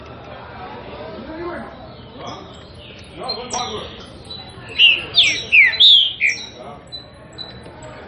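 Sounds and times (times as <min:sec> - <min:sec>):
green-winged saltator song in classic song style: 0:03.1 - 0:06.6.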